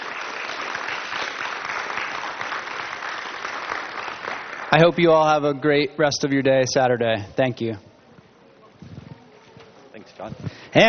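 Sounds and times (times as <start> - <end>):
audience round of applause: 0.0 - 5.1
speech: 4.7 - 7.9, 10.2 - 10.8.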